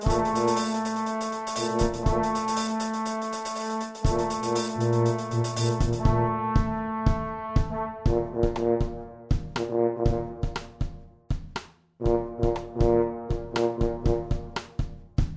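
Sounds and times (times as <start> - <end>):
trombone: 0.0 - 11.0, 12.0 - 14.9
tuba: 0.0 - 11.1, 12.0 - 15.0
drum kit: 0.0 - 15.3.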